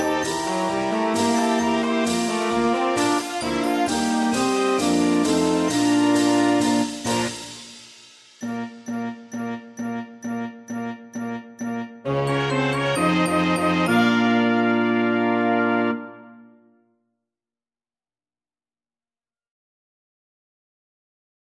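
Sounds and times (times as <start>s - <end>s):
marching band playing: 0.0s - 16.2s.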